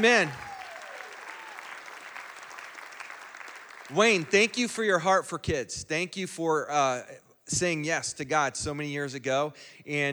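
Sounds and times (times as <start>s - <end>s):
speech: 0.0s - 0.4s, 3.9s - 10.1s
audience applause: 0.0s - 5.0s.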